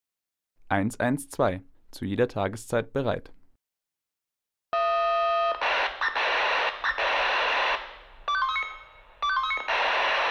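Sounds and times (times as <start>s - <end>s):
speech: 0.7s - 3.4s
volunteer fire brigade call-out alarm: 4.8s - 10.2s.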